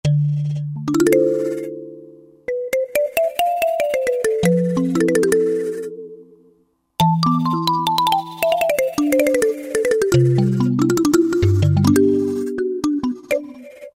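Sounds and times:
Roland JD-990 synthesizer: 0.1 - 13.9.

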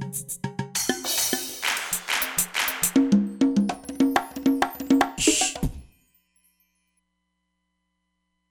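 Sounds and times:
drum kit: 0.0 - 6.0.

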